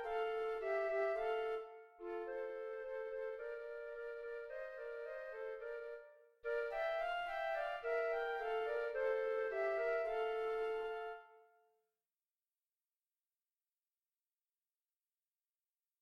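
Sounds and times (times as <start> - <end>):
easy flute duet: 0.0 - 11.5.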